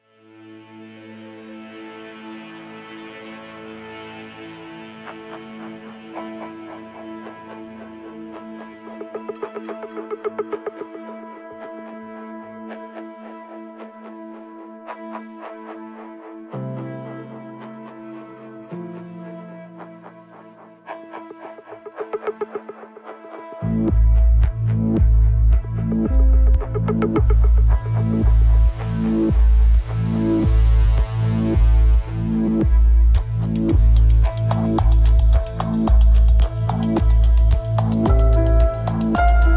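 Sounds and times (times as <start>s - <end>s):
oppressive suspense music: 22.0s - 39.5s.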